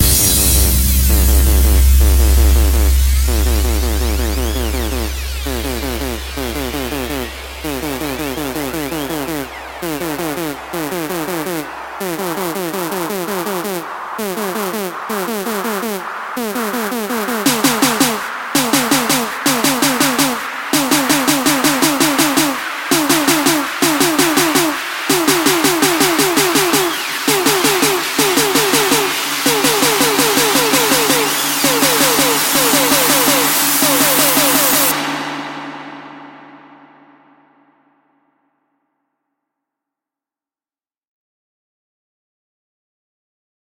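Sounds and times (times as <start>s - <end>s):
full drum kit loop: 0.0s - 36.0s.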